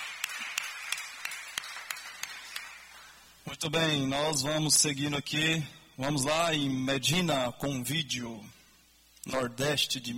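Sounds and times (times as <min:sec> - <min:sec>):
rhythmic clapping: 0:00.0 - 0:03.2
hiss: 0:00.0 - 0:10.1
speech: 0:03.4 - 0:08.6, 0:09.2 - 0:10.1.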